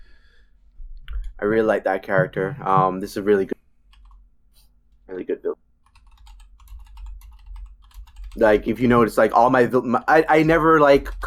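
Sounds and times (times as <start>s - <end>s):
speech: 1.4s - 3.6s, 5.1s - 5.6s, 8.4s - 11.2s
typing notes on a computer keyboard: 3.9s - 4.2s, 5.8s - 11.2s.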